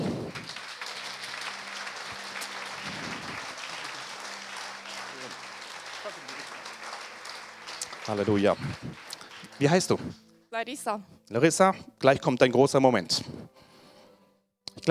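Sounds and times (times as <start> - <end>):
big applause: 0.0 - 10.2
speech: 8.1 - 13.5.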